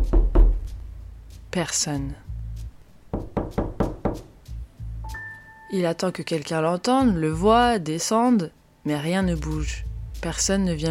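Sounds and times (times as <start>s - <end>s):
knocking on a door: 0.0s - 0.7s, 3.1s - 4.3s
speech: 1.5s - 2.3s, 5.7s - 10.8s.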